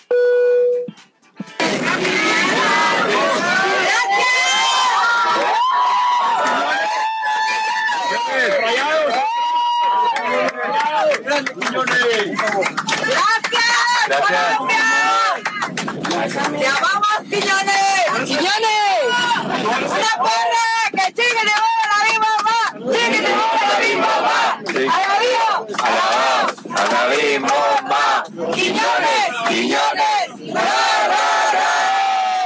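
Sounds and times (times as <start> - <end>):
Mexican passengers giving an ovation on a flight: 1.6 - 32.4.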